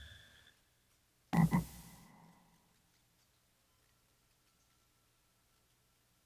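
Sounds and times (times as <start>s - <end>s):
frog croaking: 1.4s - 2.4s.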